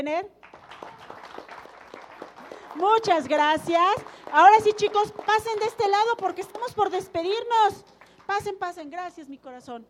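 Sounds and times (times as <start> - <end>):
speech: 0.0 - 0.4, 2.8 - 9.8
audience applause: 0.4 - 6.6.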